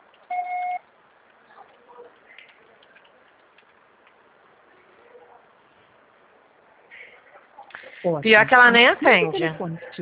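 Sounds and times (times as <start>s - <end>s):
faint hiss: 0.0s - 10.0s
voicemail beep: 0.3s - 0.8s
speech: 8.0s - 10.0s.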